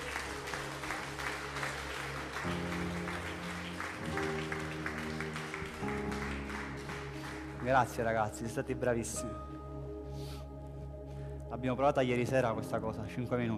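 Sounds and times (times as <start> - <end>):
audience clapping: 0.0 - 8.8
speech: 7.7 - 9.5, 11.6 - 13.5.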